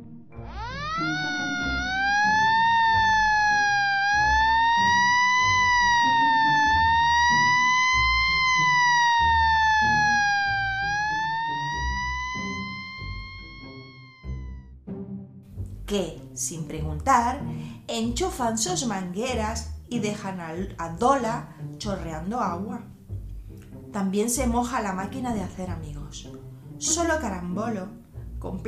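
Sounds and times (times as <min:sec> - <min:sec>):
fire engine siren: 0:00.0 - 0:14.8
speech: 0:15.9 - 0:22.9, 0:23.9 - 0:28.6.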